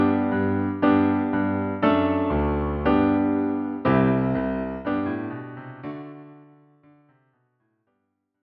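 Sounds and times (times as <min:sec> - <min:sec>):
prelude: 0:00.0 - 0:06.5.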